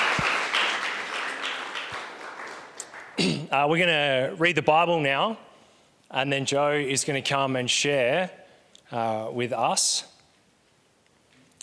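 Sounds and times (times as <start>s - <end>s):
audience applause: 0.0s - 3.3s
speech: 3.2s - 5.5s, 6.1s - 10.1s.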